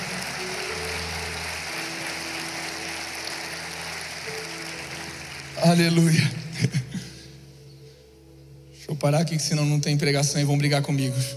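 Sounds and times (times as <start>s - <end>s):
audience applause: 0.0s - 6.8s
speech: 5.6s - 6.8s, 9.0s - 11.3s.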